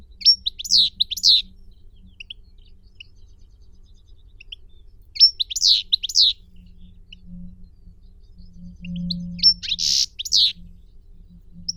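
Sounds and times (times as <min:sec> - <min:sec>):
goldfinch Carduelis carduelis: 0:00.2 - 0:01.5, 0:05.2 - 0:06.4, 0:09.4 - 0:10.6.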